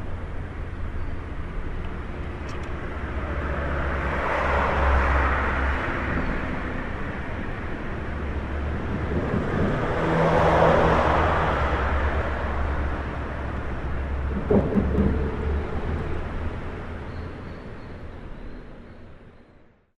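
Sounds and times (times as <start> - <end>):
street ambience: 0.0 - 19.9.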